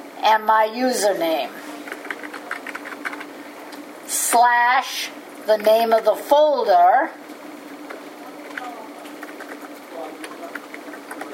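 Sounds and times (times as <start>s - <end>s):
speech: 0.2s - 1.7s, 4.3s - 7.2s
fingers typing a web address on a computer keyboard: 1.8s - 3.3s, 7.9s - 11.3s.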